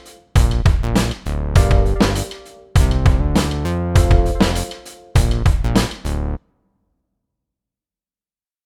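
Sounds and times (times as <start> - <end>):
backing track in G: 0.0 - 6.3.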